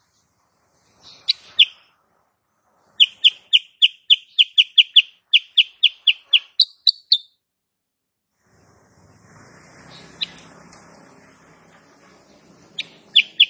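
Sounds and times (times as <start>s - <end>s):
sooty-headed bulbul chirping: 1.0s - 1.9s, 3.0s - 7.4s, 12.8s - 13.4s.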